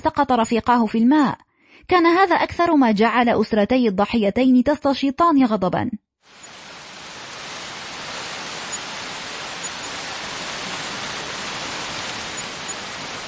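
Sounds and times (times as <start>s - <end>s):
speech: 0.0s - 6.5s
storm with heavy rain: 6.3s - 13.2s.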